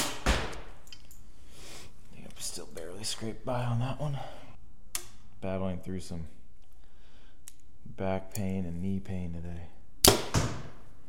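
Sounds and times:
arrow from a bow striking the target: 0.0 - 0.7, 10.0 - 10.8
speech: 2.6 - 4.4, 5.4 - 6.4, 8.0 - 9.8.

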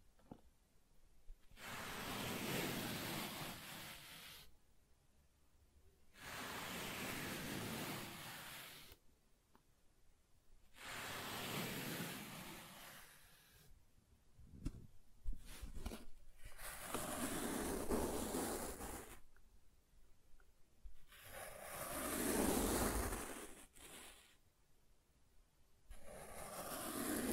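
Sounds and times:
small taps and scrapes: 0.2 - 0.5, 14.5 - 16.2
soft tracing strokes across smooth and rough surfaces: 1.5 - 4.6, 6.1 - 9.0, 10.7 - 13.8, 15.2 - 19.4, 20.8 - 24.6, 25.9 - 27.3.

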